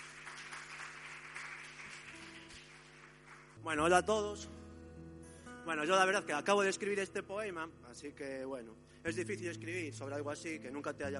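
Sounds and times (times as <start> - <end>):
audience applause: 0.0 - 3.6
speech: 3.6 - 4.6, 5.7 - 11.1.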